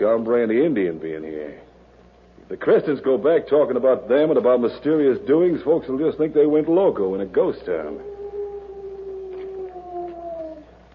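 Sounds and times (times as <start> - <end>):
speech: 0.0 - 1.7, 2.5 - 8.1
low hum: 0.0 - 10.9
owl call used as a signal: 7.8 - 10.8.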